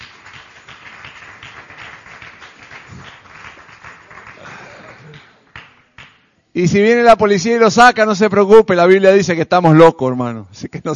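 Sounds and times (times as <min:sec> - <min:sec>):
audience applause: 0:00.0 - 0:05.8
speech: 0:06.6 - 0:10.9.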